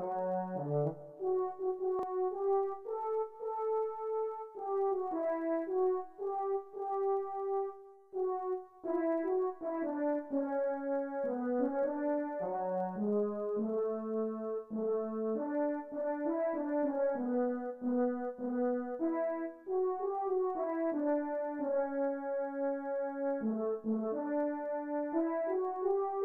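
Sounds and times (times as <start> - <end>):
French horn melody: 0.0 - 26.2.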